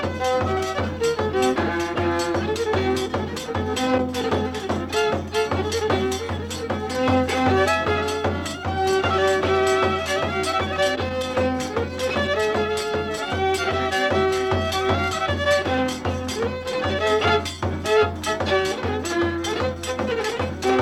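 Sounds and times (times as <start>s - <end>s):
polka music: 0.0s - 20.8s.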